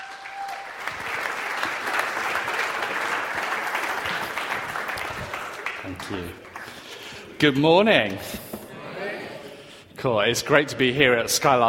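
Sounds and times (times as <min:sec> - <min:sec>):
church congregation applauding to welcome a guest speaker: 0:00.0 - 0:07.4
speech: 0:05.9 - 0:06.5, 0:07.4 - 0:08.5, 0:10.0 - 0:11.6.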